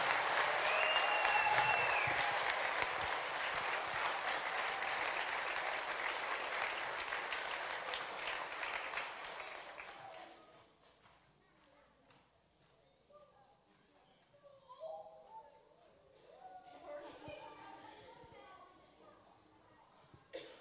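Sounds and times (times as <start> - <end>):
audience cheering and applauding: 0.0 - 10.0.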